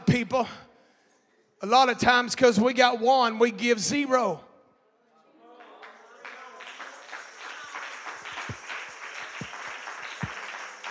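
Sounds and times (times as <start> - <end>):
speech: 0.2 - 0.7, 1.6 - 4.4
crowd clapping: 5.6 - 10.8.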